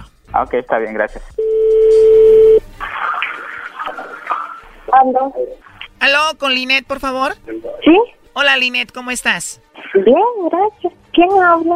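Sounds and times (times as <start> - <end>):
speech: 0.4 - 2.4, 5.0 - 11.7
telephone dial tone: 1.4 - 2.6.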